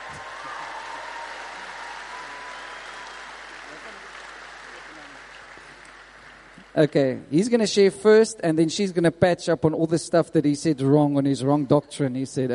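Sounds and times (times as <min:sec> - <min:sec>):
audience applause: 0:00.0 - 0:07.2
speech: 0:06.8 - 0:12.5.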